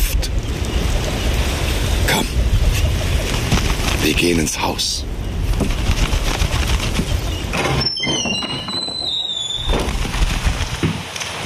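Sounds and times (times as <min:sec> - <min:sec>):
burning fire crackling and popping: 0:00.2 - 0:07.5, 0:09.0 - 0:11.4
speech: 0:04.1 - 0:05.8
thin high whistling tones: 0:07.8 - 0:10.0.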